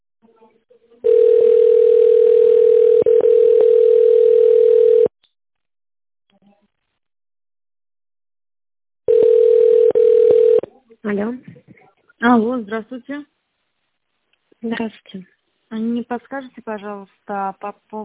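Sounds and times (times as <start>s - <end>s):
telephone tone: 1.0s - 5.1s, 9.1s - 10.6s
speech: 11.1s - 13.4s, 14.6s - 18.0s.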